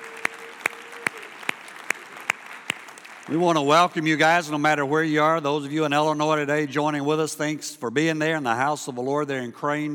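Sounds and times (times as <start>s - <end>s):
church congregation clapping: 0.0s - 4.7s
noise: 0.0s - 9.9s
speech: 3.3s - 9.9s.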